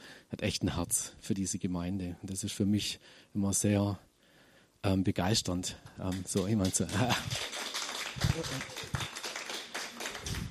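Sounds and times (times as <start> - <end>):
speech: 0.3 - 4.1, 4.8 - 7.6, 8.2 - 9.0
audience applause: 6.1 - 10.4.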